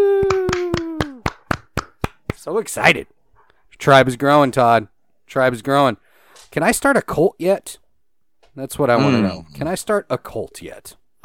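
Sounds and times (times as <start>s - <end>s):
hand clapping: 0.1s - 2.5s
speech: 2.4s - 3.2s, 3.8s - 7.8s, 8.6s - 11.2s.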